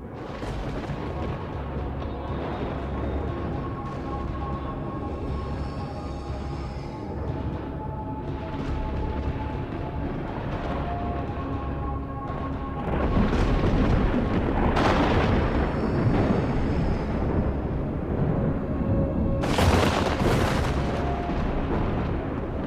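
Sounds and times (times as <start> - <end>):
lightning crashing: 0.0 - 4.0, 12.7 - 22.6
crackling thunder: 0.0 - 22.6.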